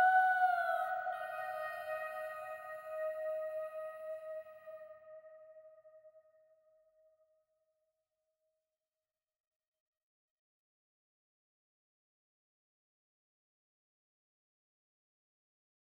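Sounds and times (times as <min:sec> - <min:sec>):
isolated vocals: 0:00.0 - 0:05.6.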